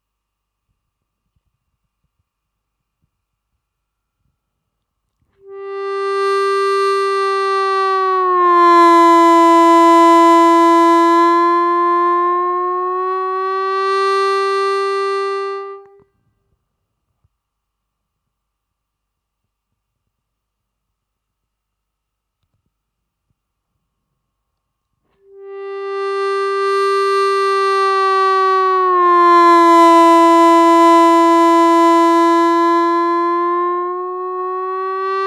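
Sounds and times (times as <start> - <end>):
harmonica bend practice track: 5.4 - 16.0, 25.3 - 35.2.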